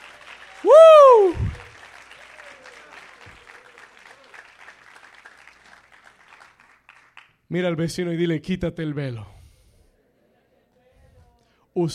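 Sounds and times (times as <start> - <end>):
audience applause: 0.0 - 7.3
speech: 7.5 - 9.4, 11.8 - 11.9.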